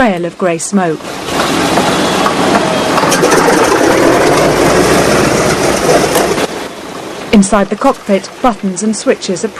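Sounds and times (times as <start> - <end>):
speech: 0.0 - 2.1, 7.3 - 9.5
B-17 bomber propeller engines starting up: 1.4 - 6.5.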